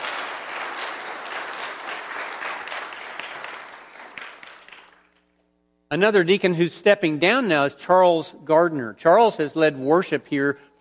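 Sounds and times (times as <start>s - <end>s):
audience applause: 0.0s - 5.2s
speech: 5.9s - 10.8s.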